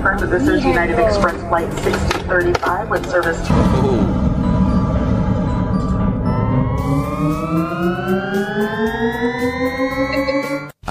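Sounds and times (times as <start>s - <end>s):
speech: 0.2s - 4.2s
annoying spaceship sound effect: 3.5s - 10.7s.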